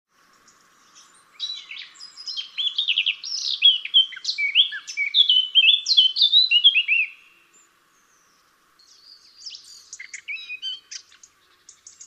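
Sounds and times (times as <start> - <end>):
Eurasian blackcap Sylvia atricapilla song of hurried warbling and mellow whistles: 1.4 - 7.3, 9.4 - 11.2.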